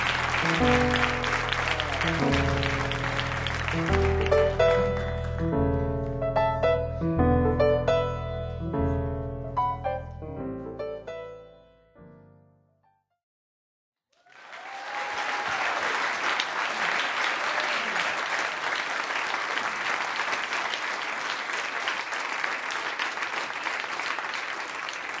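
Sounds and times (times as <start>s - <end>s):
audience applause with faint whoops: 0.0s - 5.6s, 14.2s - 25.1s
piano phrase: 0.0s - 12.9s.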